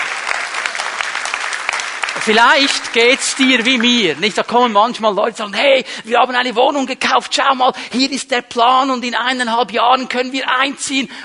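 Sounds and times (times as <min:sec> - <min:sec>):
audience applause: 0:00.0 - 0:04.7
speech: 0:02.2 - 0:11.2.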